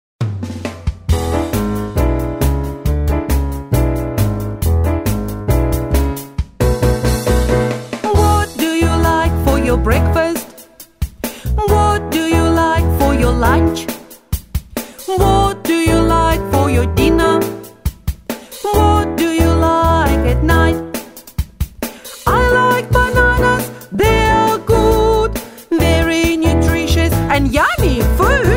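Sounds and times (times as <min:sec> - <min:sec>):
blues music: 0:00.4 - 0:28.5.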